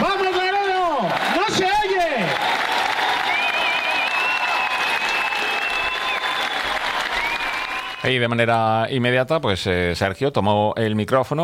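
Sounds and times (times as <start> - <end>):
crowd applauding loudly: 0.0 - 8.3
speech: 8.1 - 11.4.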